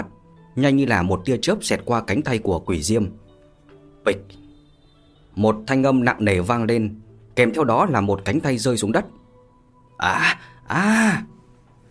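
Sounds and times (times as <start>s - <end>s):
speech: 0.6s - 3.2s, 4.0s - 4.4s, 5.4s - 9.2s, 10.0s - 11.3s
man's anguished scream of pain: 10.0s - 11.4s.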